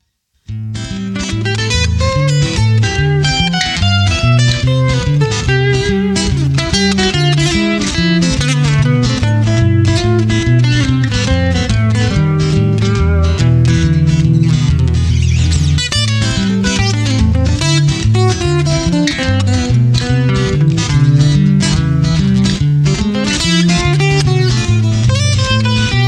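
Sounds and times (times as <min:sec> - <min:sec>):
piezo duo: 0:00.4 - 0:26.0.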